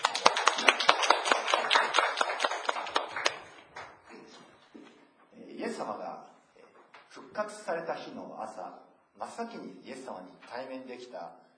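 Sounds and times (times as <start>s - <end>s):
audience clapping: 0.0s - 4.1s
speech: 7.4s - 11.4s.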